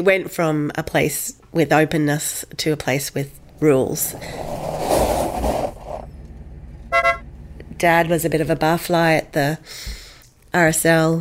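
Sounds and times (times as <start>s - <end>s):
speech: 0.0s - 4.8s, 7.8s - 11.1s
rumble of road or engine noise: 1.9s - 9.7s
car horn beeping: 6.1s - 7.6s.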